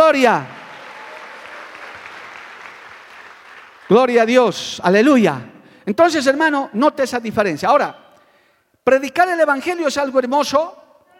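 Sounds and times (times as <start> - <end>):
speech: 0.1 - 0.6, 3.9 - 8.0, 8.8 - 11.1
audience applauding: 0.1 - 4.2.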